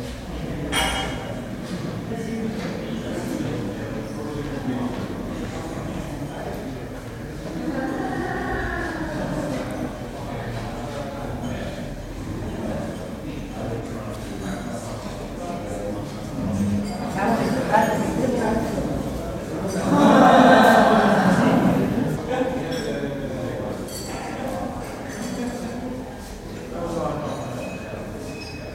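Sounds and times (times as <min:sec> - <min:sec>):
general chatter in a large conference room in Spain during coffee break: 0:00.0 - 0:28.7
clatter of cups during coffee break in a large conference room in Spain: 0:00.7 - 0:01.2
laughter: 0:07.5 - 0:09.8, 0:19.5 - 0:22.7.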